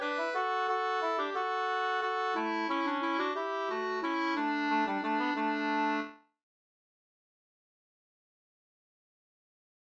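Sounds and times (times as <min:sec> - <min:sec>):
bridal waltz music: 0:00.0 - 0:06.2.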